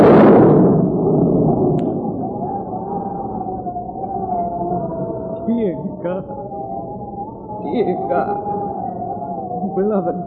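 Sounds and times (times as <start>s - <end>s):
thunder of an approaching storm: 0.0s - 3.8s
speech: 6.0s - 6.5s, 7.7s - 8.6s, 9.8s - 10.2s.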